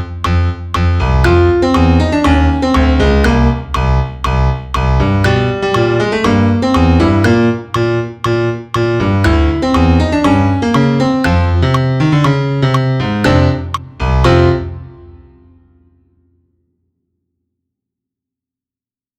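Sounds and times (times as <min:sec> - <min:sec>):
piano click: 0:00.0 - 0:14.7.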